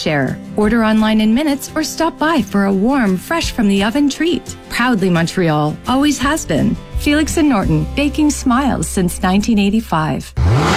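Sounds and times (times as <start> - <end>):
speech: 0.0 - 10.7
car engine revving at a summer car meet: 6.0 - 10.7.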